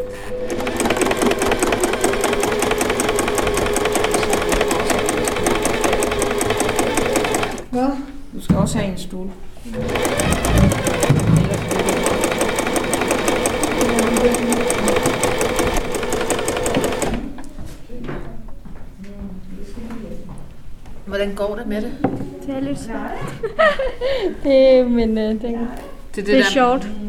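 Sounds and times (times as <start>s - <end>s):
sewing machine running while quilting: 0.4s - 7.7s, 9.7s - 17.3s
speech: 8.7s - 10.6s, 21.2s - 27.0s
laughter: 23.3s - 24.4s.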